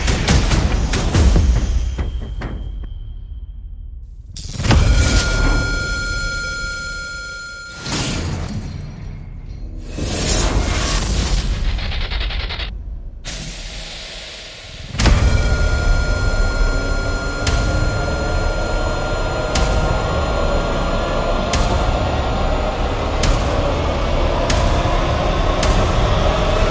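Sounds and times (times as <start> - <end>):
percussion rises: 0.0 - 26.6
sound effects: 4.4 - 12.7, 14.8 - 26.6.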